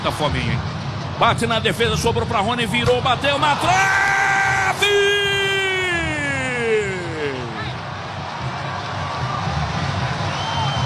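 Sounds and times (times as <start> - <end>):
speech: 0.0 - 4.0
stadium crowd applauding: 3.6 - 10.8.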